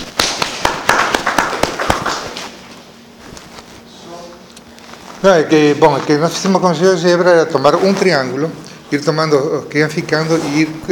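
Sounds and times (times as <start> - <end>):
applause: 0.1 - 2.5
speech: 5.2 - 10.8.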